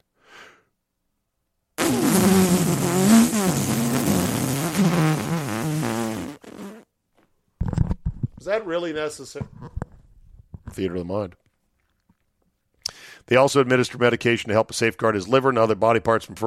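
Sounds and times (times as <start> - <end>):
fart sound effect: 1.8 - 6.9
speech: 8.5 - 9.6, 10.8 - 11.4, 13.3 - 16.4.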